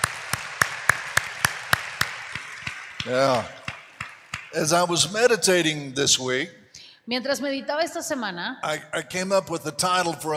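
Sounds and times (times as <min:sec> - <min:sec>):
audience clapping in rhythm: 0:00.0 - 0:05.2
speech: 0:03.0 - 0:03.6, 0:04.5 - 0:10.3.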